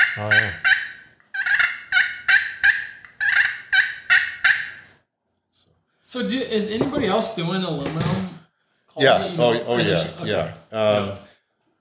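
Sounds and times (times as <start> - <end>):
friction turkey call imitating turkey yelps: 0.0 - 5.0
speech: 0.2 - 0.6, 6.2 - 8.4, 9.0 - 11.2.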